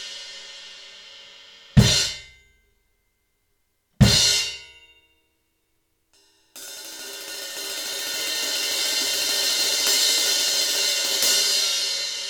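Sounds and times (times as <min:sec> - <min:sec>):
16-inch rock crash cymbal: 0:00.0 - 0:02.4, 0:06.2 - 0:12.2.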